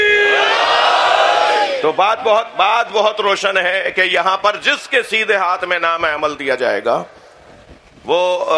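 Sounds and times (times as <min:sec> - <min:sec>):
religious gathering crowd chanting in unison answering a slogan: 0:00.1 - 0:01.9
speech: 0:01.9 - 0:07.2, 0:08.1 - 0:08.5.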